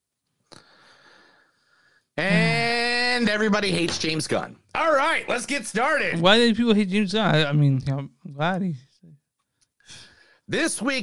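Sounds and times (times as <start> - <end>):
deep breath: 0.5 - 2.2, 9.8 - 10.5
speech: 3.2 - 4.6, 5.2 - 8.9, 9.9 - 11.0.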